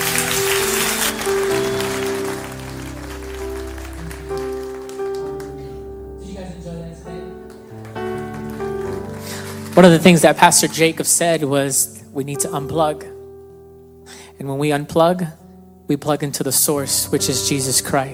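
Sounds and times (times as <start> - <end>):
audience clapping: 0.0 - 5.7, 7.4 - 11.1
speech: 9.8 - 13.1, 14.4 - 18.1.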